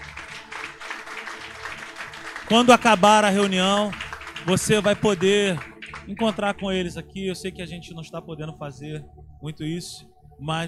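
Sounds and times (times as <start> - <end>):
audience applauding: 0.0 - 6.5
speech: 2.5 - 10.6.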